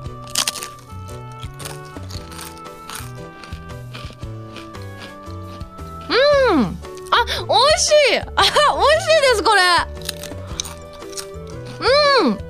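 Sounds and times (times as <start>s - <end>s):
biting into a rice cracker: 0.0s - 5.7s, 9.9s - 11.8s
crunchy chewing of a rice cracker: 0.0s - 6.1s, 9.9s - 11.9s
soft steady music: 0.0s - 12.4s
speech: 7.5s - 9.9s.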